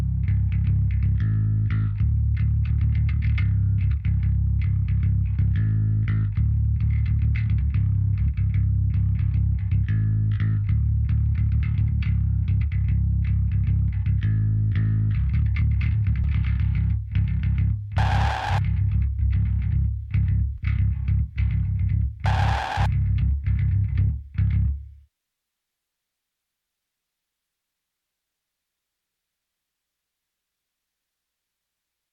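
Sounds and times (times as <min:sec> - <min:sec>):
guitars: 0:00.0 - 0:24.9
bass: 0:00.0 - 0:25.0.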